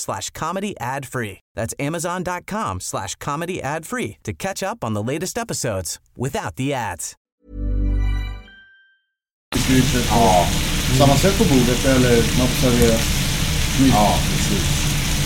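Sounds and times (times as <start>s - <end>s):
speech: 0.0s - 7.7s, 9.7s - 13.2s, 13.8s - 14.9s
food sizzling in a frying pan: 9.6s - 15.2s.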